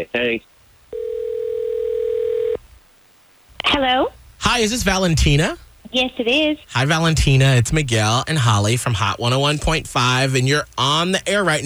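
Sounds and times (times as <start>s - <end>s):
speech: 0.0s - 0.6s, 3.7s - 11.6s
faint noise: 0.0s - 11.6s
steady mid-pitched telephone tone during a call to a radio listener: 0.9s - 2.6s.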